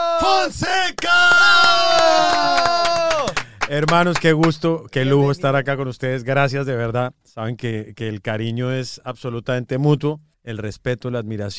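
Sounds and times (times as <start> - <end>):
crowd cheering: 0.0 - 4.3
speech: 0.2 - 2.3, 3.7 - 11.5
steady rhythmic clapping: 0.9 - 5.3.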